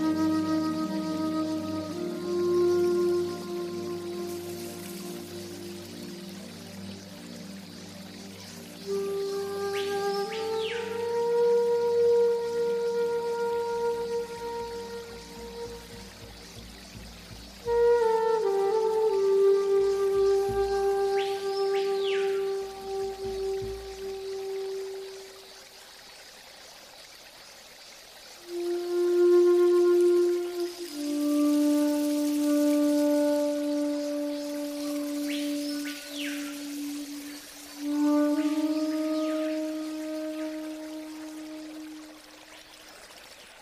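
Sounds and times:
faint trickling water: 0.0 - 43.5
slow new age music with flute-like lead over soft drone: 0.0 - 43.5.

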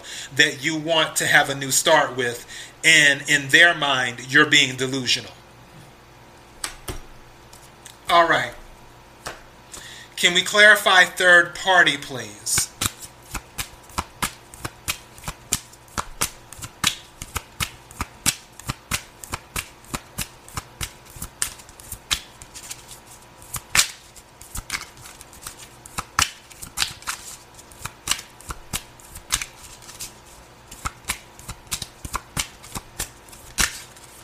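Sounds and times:
speech: 0.3 - 5.4, 8.1 - 8.6, 10.2 - 12.7
tarot cards being shuffled and drawn: 12.6 - 34.2.

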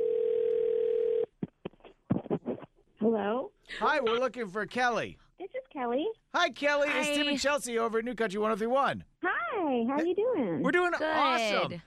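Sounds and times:
telephone ringing: 0.0 - 1.3
speech: 3.0 - 5.2, 5.8 - 9.1, 9.7 - 11.8.

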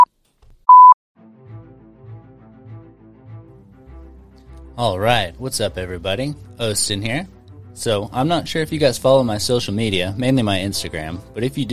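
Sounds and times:
beep tone: 0.7 - 1.0
speech: 4.8 - 11.7.

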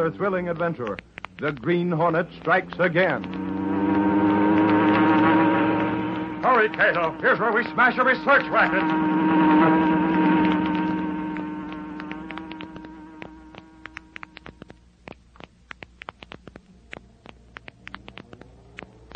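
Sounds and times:
speech: 0.0 - 3.5, 6.4 - 10.3
light irregular clicks and ticks: 0.0 - 3.6, 11.3 - 19.1
cheap electric fan motor buzzing: 0.0 - 16.6.

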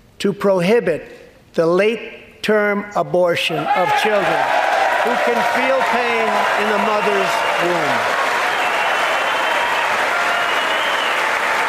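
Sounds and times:
speech: 0.2 - 8.2
audience clapping: 4.1 - 11.6.

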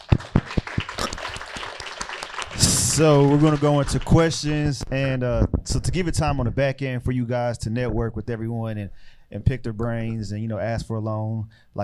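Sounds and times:
audience clapping: 0.0 - 4.8
speech: 3.0 - 11.8.

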